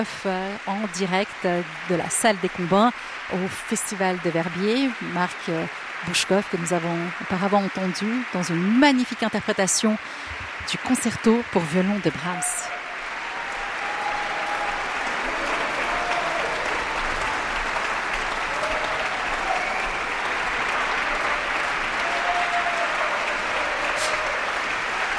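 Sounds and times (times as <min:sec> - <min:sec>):
speech: 0:00.0 - 0:12.7
concert audience applauding a violinist at the Verbier Festival: 0:00.0 - 0:25.1.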